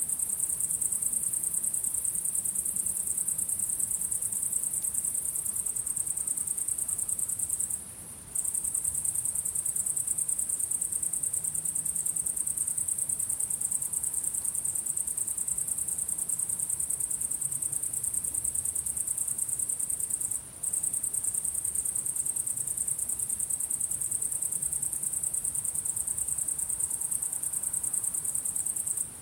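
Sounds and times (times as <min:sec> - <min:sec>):
crickets in a dense high-pitched pulsing chorus: 0:00.0 - 0:29.2.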